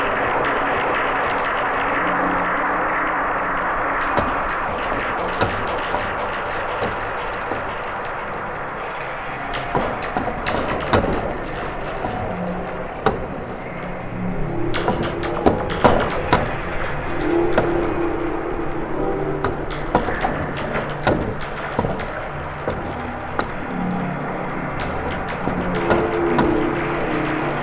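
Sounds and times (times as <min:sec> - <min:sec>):
ambient soundscape transition: 0:00.0 - 0:27.6.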